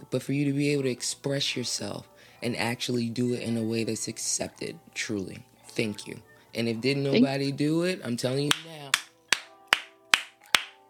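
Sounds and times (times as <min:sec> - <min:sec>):
speech: 0:00.1 - 0:08.5
clapping: 0:08.5 - 0:10.8.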